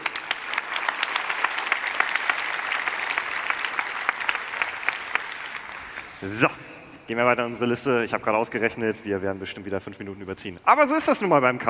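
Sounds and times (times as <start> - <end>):
audience applause: 0.0 - 6.3
speech: 6.2 - 11.6.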